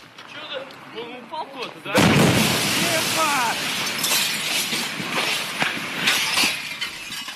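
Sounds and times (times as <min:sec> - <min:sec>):
window pane shattering from meteorite shock wave: 0:02.0 - 0:07.3.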